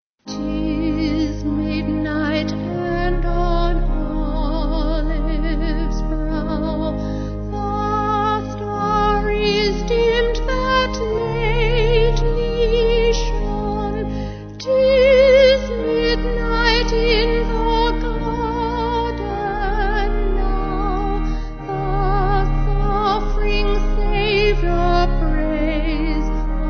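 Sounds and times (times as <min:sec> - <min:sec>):
vocal organ: 0:00.3 - 0:26.6.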